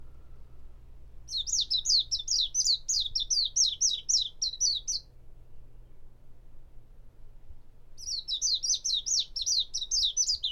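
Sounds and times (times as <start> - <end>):
warbling white-eye twittering: 1.3 - 5.0, 8.0 - 10.5.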